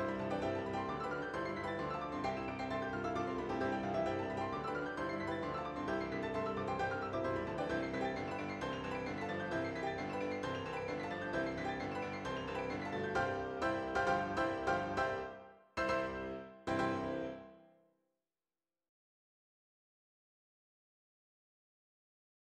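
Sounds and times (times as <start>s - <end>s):
piano four hands: 0.0s - 17.7s.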